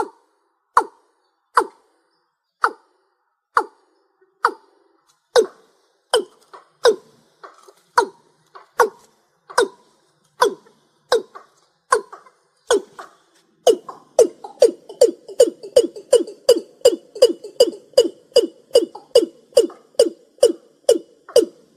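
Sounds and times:
rail calling: 0.8 - 21.7.

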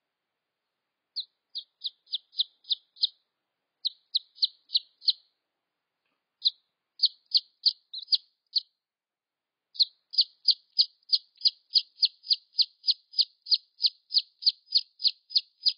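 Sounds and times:
red junglefowl chick peeps: 1.2 - 3.2, 3.8 - 5.3, 6.4 - 8.7, 9.8 - 15.7.

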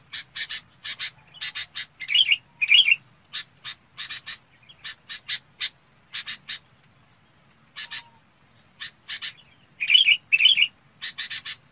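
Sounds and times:
Red-whiskered bulbul chattering: 0.0 - 6.7, 7.7 - 11.6.

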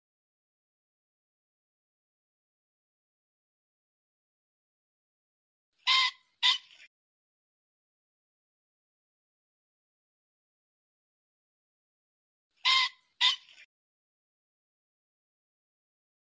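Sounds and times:
pheasant double squawk: 5.8 - 6.9, 12.6 - 13.7.

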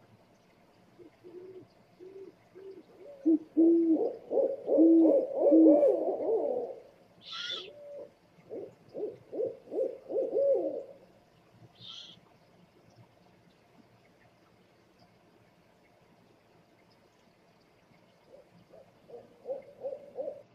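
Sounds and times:
scops owl hooting: 1.2 - 11.0, 11.8 - 12.2, 18.3 - 20.5.

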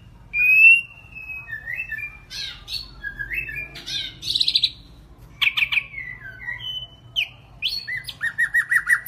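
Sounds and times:
White-rumped shama singing whistles: 0.3 - 3.7, 5.4 - 9.0.

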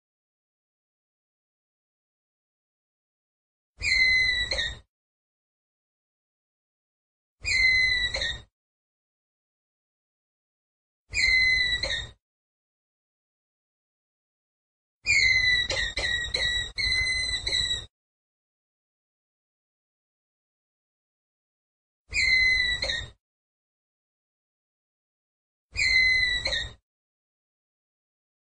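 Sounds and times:
ground squirrel whistled call: 3.8 - 4.8, 7.4 - 8.5, 11.1 - 12.2, 15.1 - 17.9, 22.1 - 23.2, 25.8 - 26.8.

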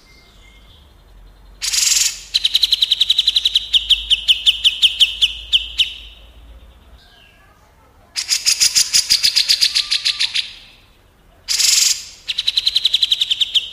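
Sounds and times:
bulbul singing: 0.0 - 7.5, 8.1 - 13.7.

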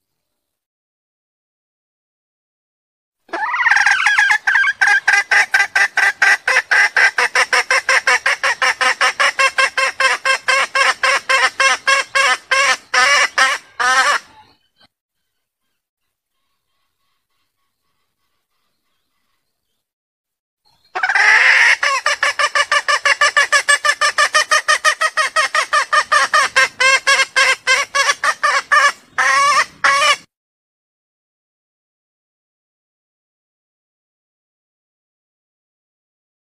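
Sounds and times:
junglefowl mating call: 3.3 - 14.6, 20.9 - 30.3.

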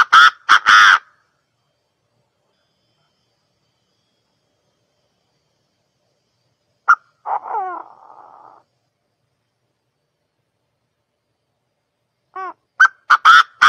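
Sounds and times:
partridge calling: 0.0 - 1.2, 6.9 - 8.6, 12.4 - 13.6.

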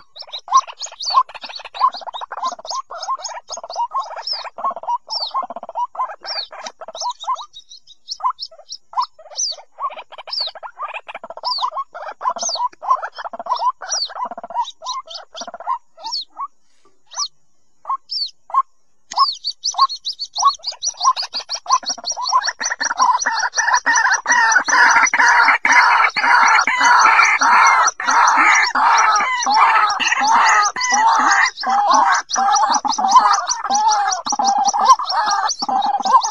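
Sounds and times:
white-breasted waterhen calls: 0.0 - 36.2.

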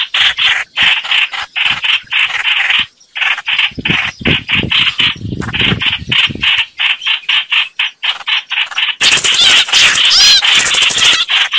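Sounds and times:
red-whiskered bulbul harsh distress calls: 0.0 - 11.5.

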